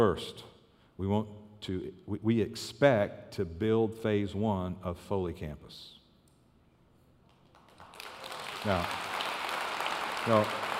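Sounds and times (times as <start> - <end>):
speech: 0.0 - 6.0, 8.6 - 9.1, 10.2 - 10.7
audience clapping: 7.2 - 10.7.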